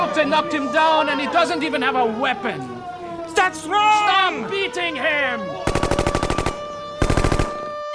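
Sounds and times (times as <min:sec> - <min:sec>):
speech: 0:00.1 - 0:02.8, 0:03.4 - 0:05.8
machine gun fire: 0:05.7 - 0:07.8.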